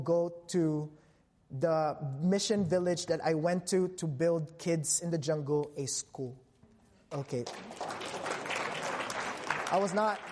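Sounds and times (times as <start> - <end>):
speech: 0.0 - 6.4, 7.1 - 7.9, 9.7 - 10.3
audience clapping during a church sermon: 7.1 - 10.3.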